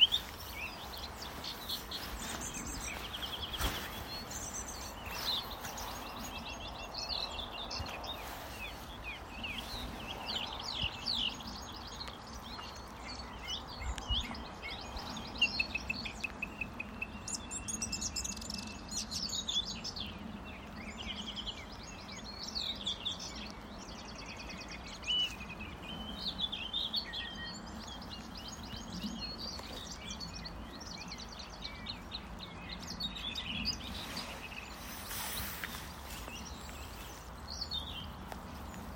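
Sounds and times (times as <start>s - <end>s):
birds singing: 0.0s - 38.9s.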